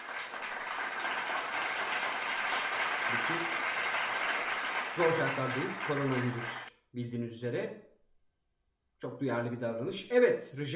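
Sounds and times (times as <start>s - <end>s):
applause: 0.0s - 6.7s
speech: 3.1s - 3.6s, 5.0s - 7.9s, 9.0s - 10.7s.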